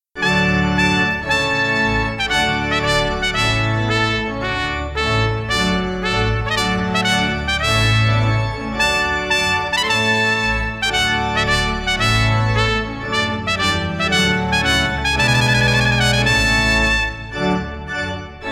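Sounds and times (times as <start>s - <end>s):
wedding trumpet tune: 0.2s - 18.4s.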